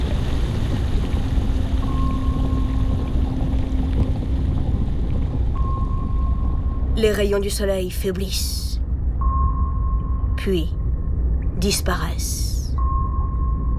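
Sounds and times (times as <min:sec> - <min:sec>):
submarine diving down into the ocean, deep water and machinery noise: 0:00.0 - 0:13.7
speech: 0:07.0 - 0:08.6, 0:10.4 - 0:10.8, 0:11.6 - 0:12.5.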